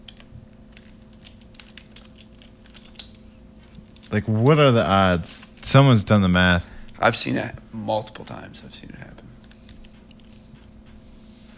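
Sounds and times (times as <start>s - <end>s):
typing on a computer keyboard to run a Google search: 0.0s - 4.1s
speech: 4.1s - 9.3s.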